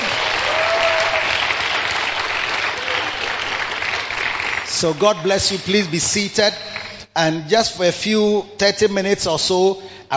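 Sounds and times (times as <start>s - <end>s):
large gathered crowd applauding: 0.0s - 5.9s
speech: 4.8s - 10.1s.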